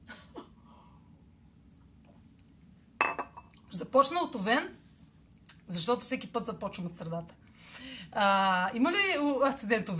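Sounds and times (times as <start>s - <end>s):
coffee cup clinking against a saucer: 3.0s - 3.5s
speech: 3.7s - 4.8s, 5.7s - 7.4s, 8.1s - 9.9s.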